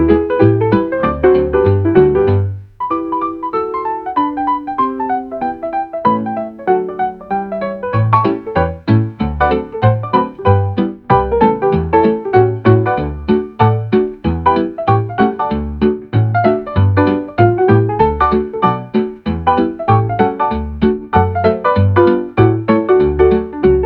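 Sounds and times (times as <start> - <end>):
instrumental swing music on an old gramophone: 0.0 - 23.8.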